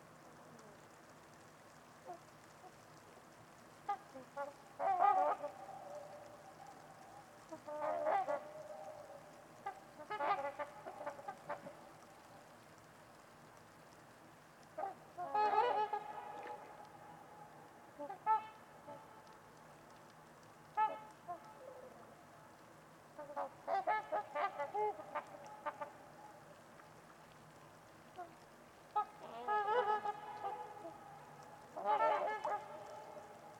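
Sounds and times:
quiet hiss: 0:00.0 - 0:33.5
trumpeter swans honking: 0:03.8 - 0:11.9, 0:14.8 - 0:19.2, 0:23.2 - 0:26.4, 0:28.2 - 0:33.5.

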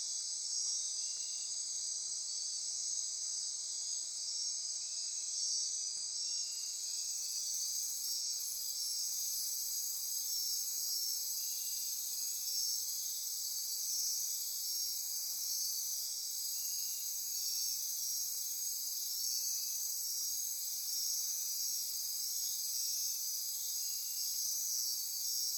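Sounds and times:
insect chorus buzzing: 0:00.1 - 0:25.5.

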